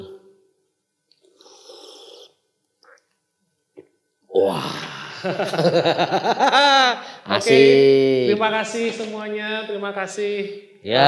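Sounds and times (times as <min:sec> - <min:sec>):
soft sips or swallows: 0:01.2 - 0:03.2
slurping a drink: 0:01.4 - 0:03.1
speech: 0:04.5 - 0:11.0
laughter: 0:04.8 - 0:07.7.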